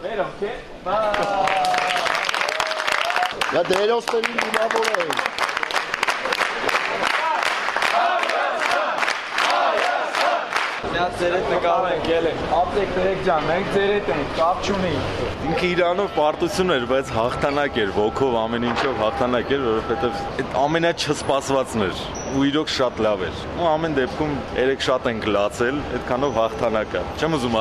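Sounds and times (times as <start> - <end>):
speech: 0.1 - 1.5, 3.5 - 5.4, 11.0 - 27.5
fans clapping at Zvartnots airport in Yerevan: 1.1 - 10.8
fans chanting to welcome Armenia's national team: 6.9 - 10.8.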